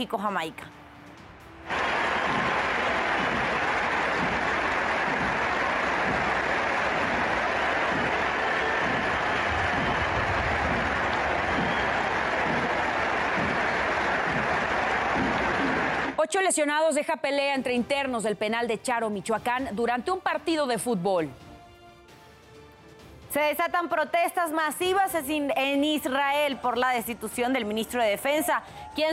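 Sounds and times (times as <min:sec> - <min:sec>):
speech: 0:00.0 - 0:00.8, 0:16.3 - 0:21.4, 0:23.3 - 0:29.1
stadium crowd applauding at Estadio Azteca: 0:01.7 - 0:16.2.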